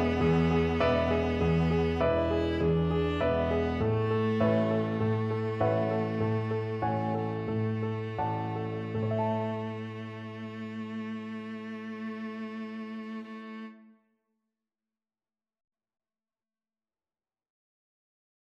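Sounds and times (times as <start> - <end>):
viola: 0.0 - 13.9.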